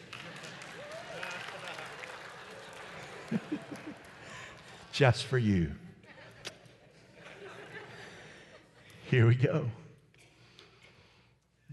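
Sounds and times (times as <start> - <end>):
crowd applauding: 0.0 - 5.1
laughter: 0.0 - 9.0
faint voices and whoops: 0.6 - 1.8
speech: 3.3 - 4.2, 5.0 - 5.8, 9.1 - 9.8.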